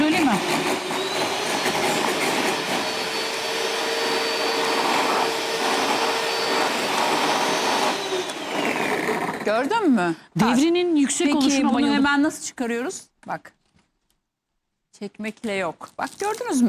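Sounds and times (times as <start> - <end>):
electric blender or mixer running: 0.0 - 9.8
speech: 9.5 - 13.6, 15.0 - 16.6.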